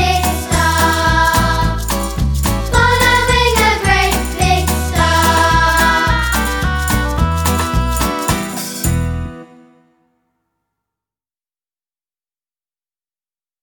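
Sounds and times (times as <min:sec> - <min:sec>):
person singing: 0:00.0 - 0:02.1, 0:02.7 - 0:08.6.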